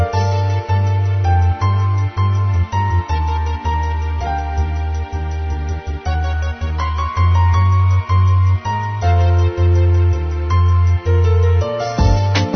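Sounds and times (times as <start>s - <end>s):
drum and bass bossa music: 0.1s - 12.5s.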